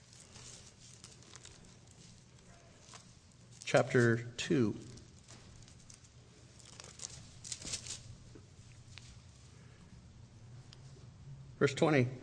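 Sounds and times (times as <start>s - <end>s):
Bible pages being turned: 0.0s - 4.2s, 4.8s - 9.1s
speech: 3.7s - 4.9s, 11.6s - 12.2s.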